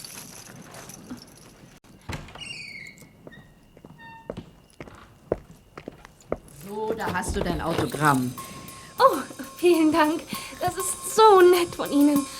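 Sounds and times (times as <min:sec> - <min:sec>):
footsteps coming down the stairs: 0:03.2 - 0:08.3
speech: 0:06.7 - 0:08.5, 0:09.6 - 0:12.3.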